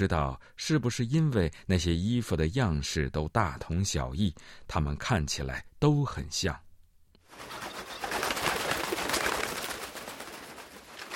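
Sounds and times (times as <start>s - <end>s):
speech: 0.0s - 6.6s
birds calling as they fly down: 7.3s - 11.1s.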